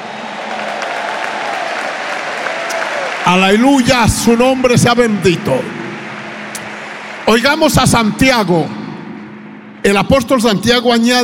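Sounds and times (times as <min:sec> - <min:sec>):
audience applause: 0:00.0 - 0:07.6
speech: 0:03.3 - 0:05.8, 0:07.3 - 0:08.8, 0:09.8 - 0:11.2.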